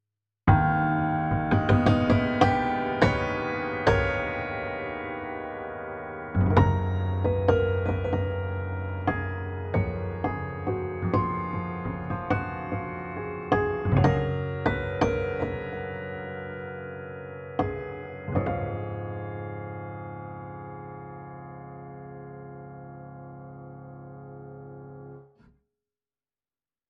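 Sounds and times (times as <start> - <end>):
Petrof Mistral piano hammers improvising: 0.5 - 21.9.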